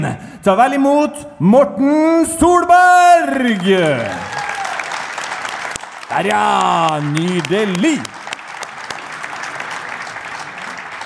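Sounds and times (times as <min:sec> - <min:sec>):
speech: 0:00.0 - 0:04.4, 0:06.1 - 0:08.2
applause: 0:03.5 - 0:11.0.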